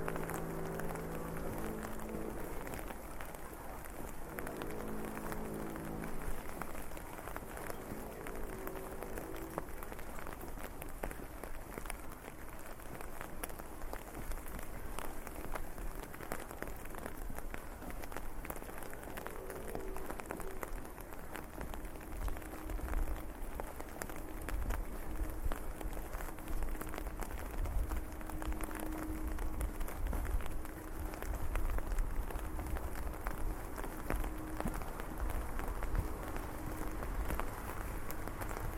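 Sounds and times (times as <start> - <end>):
deeper rumble: 0.0 - 10.6, 18.4 - 38.7
low tonal hums: 0.0 - 12.5, 13.5 - 38.7
steady rain on the streets: 0.0 - 38.7.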